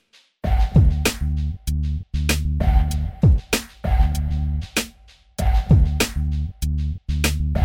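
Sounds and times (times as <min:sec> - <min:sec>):
groove music: 0:00.4 - 0:01.6, 0:02.2 - 0:06.6, 0:07.2 - 0:07.6.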